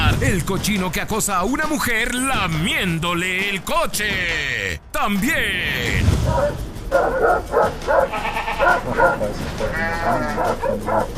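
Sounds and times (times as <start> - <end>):
speech: 0.2 - 11.1
flock of sheep or goats bleating: 8.0 - 10.6.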